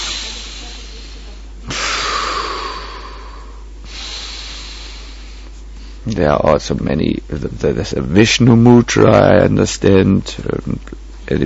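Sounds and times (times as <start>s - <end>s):
breathing while chanting a mantra: 0.0s - 6.0s
speech: 6.1s - 11.4s.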